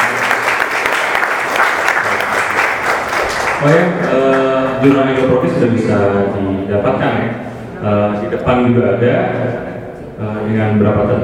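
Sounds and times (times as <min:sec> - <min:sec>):
audience applause at the IndoProgress journal launch at GIM Bandung: 0:00.0 - 0:04.6
speech: 0:03.6 - 0:11.2.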